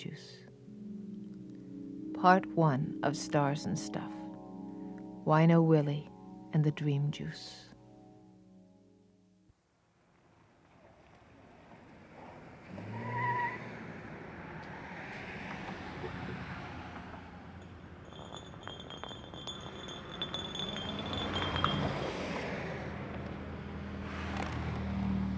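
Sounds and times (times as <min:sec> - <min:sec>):
speech: 0:02.2 - 0:04.2, 0:05.3 - 0:07.7
freeway traffic roar overhead near the Bay Bridge on-ramp: 0:11.2 - 0:25.3
faint high metallic squeals and clinks: 0:17.6 - 0:23.0.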